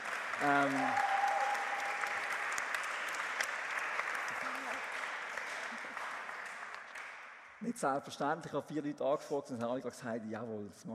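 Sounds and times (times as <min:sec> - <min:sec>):
audience applause: 0:00.0 - 0:07.4
speech: 0:00.4 - 0:01.1, 0:07.6 - 0:10.9.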